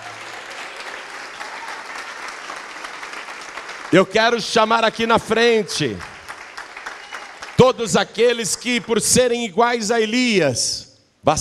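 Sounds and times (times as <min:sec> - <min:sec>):
audience applauding: 0:00.0 - 0:09.1
speech: 0:03.9 - 0:06.1, 0:07.6 - 0:11.3.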